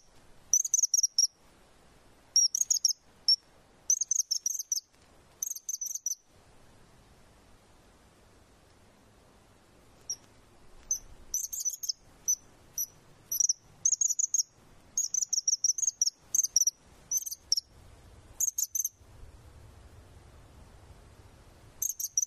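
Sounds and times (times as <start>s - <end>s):
bird twittering: 0.0s - 1.3s, 2.4s - 3.0s, 3.9s - 4.8s, 5.4s - 6.2s, 10.8s - 17.7s, 18.4s - 18.9s, 21.8s - 22.2s
hiss: 0.0s - 22.2s.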